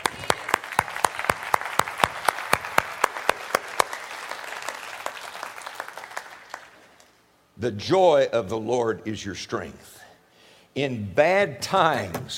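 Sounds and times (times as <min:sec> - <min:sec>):
audience clapping in rhythm: 0:00.0 - 0:07.2
speech: 0:07.6 - 0:10.0, 0:10.8 - 0:12.3.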